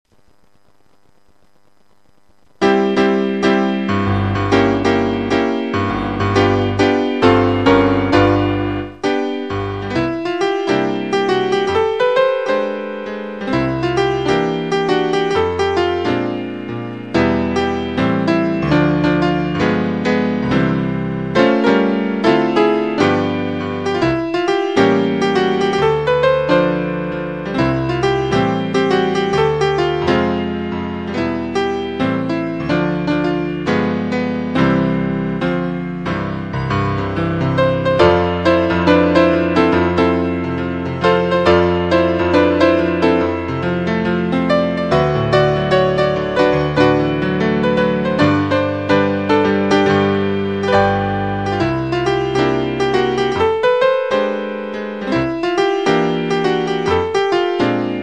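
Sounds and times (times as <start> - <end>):
Christmas piano music: 2.6 - 58.0.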